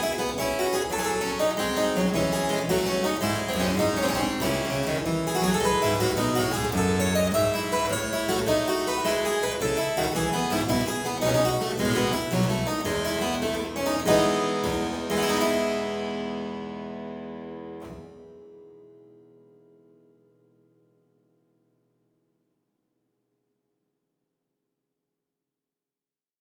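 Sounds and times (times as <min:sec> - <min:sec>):
harpsichord gigue in F major: 0:00.0 - 0:18.2.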